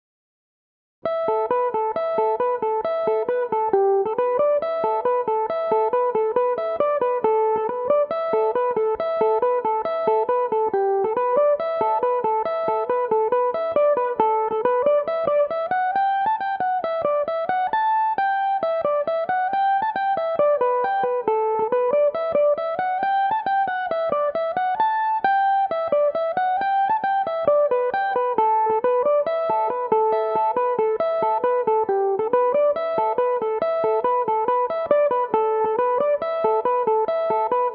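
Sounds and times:
Irish mandolin playing a polka in A Dorian: 0:01.1 - 0:37.7.

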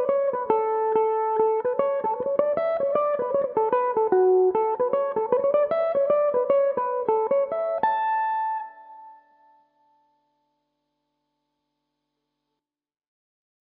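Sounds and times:
mandolin playing a polka in A major as a slide: 0:00.0 - 0:08.8.

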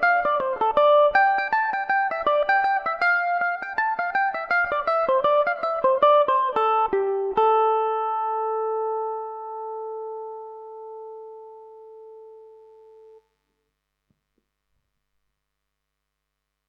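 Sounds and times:
mandolin: 0:00.0 - 0:13.2.

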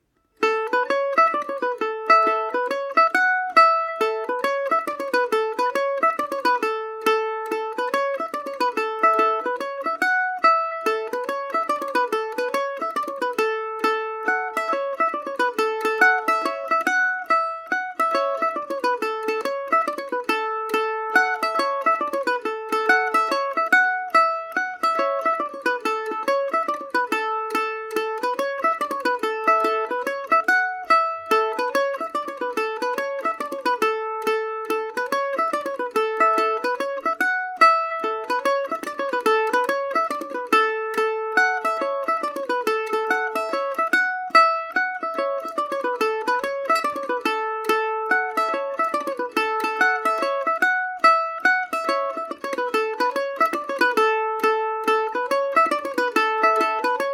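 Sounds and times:
Irish mandolin playing Paris swing in A major: 0:00.0 - 0:57.1.

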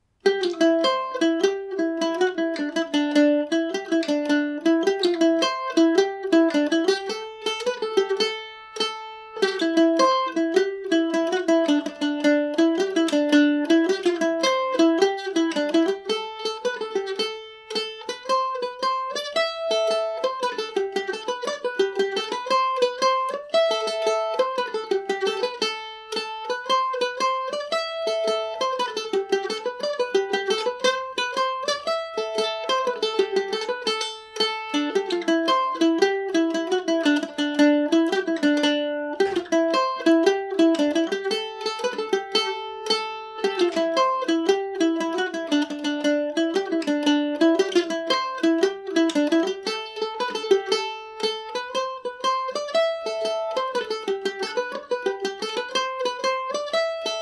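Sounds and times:
Irish mandolin playing a jig: 0:00.0 - 0:57.1.

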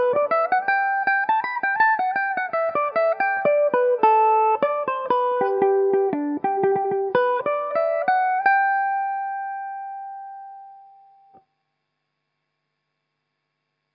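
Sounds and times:
Irish mandolin playing a reel in G major: 0:00.0 - 0:09.3.

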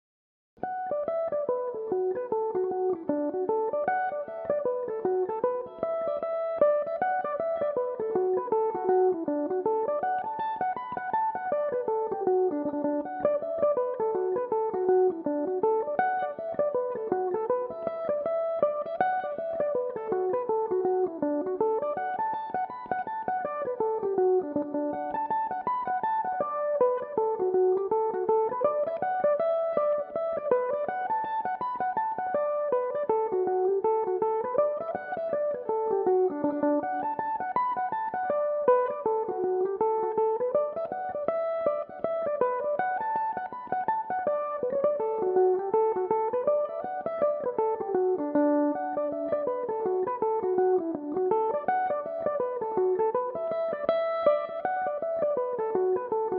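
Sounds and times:
Irish mandolin tunes in D major: 0:01.0 - 0:56.3.

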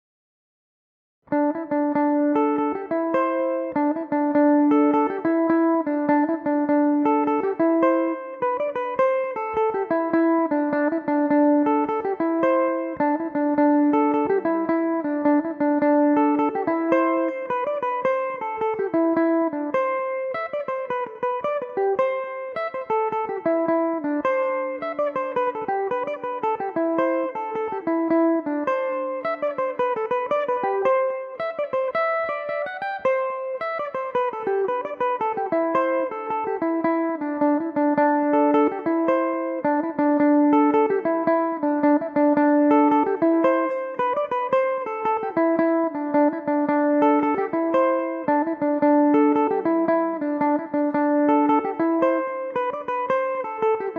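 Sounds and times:
Irish mandolin in D mixolydian: 0:01.3 - 0:53.9.

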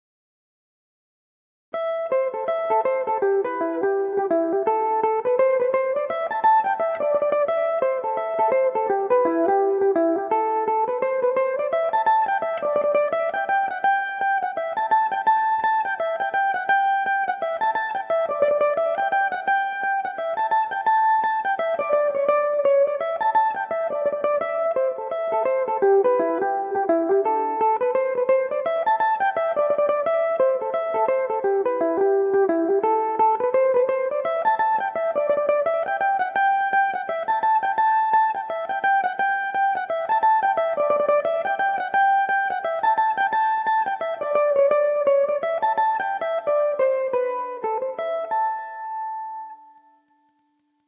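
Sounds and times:
Irish mandolin playing a reel in A dorian: 0:02.0 - 0:50.0.

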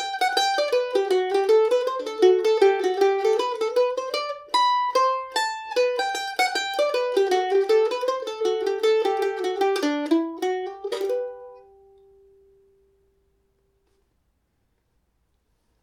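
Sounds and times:
hornpipe in G major on mandolin: 0:00.0 - 0:12.3.

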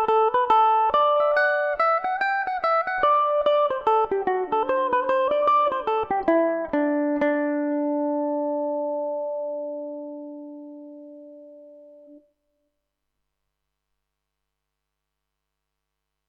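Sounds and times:
Irish mandolin in D mixolydian: 0:00.0 - 0:12.2.

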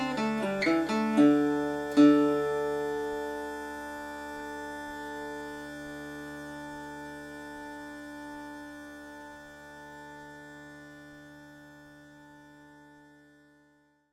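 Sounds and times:
Macaferri mandolin: 0:00.0 - 0:04.1
acoustic guitar playing a jig: 0:00.0 - 0:09.3
uilleann pipe drone: 0:00.0 - 0:14.1.

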